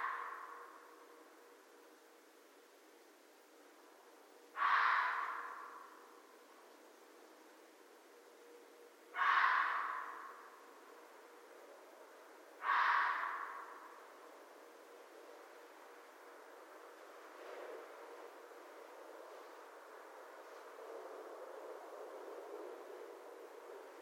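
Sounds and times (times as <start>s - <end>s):
red fox calling: 0.0s - 1.0s, 4.5s - 6.2s, 9.1s - 10.7s, 12.6s - 14.2s.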